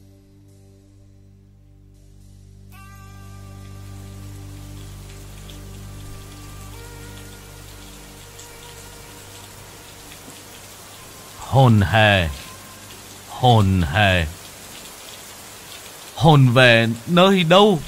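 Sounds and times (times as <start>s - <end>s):
low sustained tones: 0.0s - 13.3s
rain falling: 2.9s - 17.8s
speech: 11.6s - 12.4s, 13.4s - 14.4s, 16.2s - 17.8s.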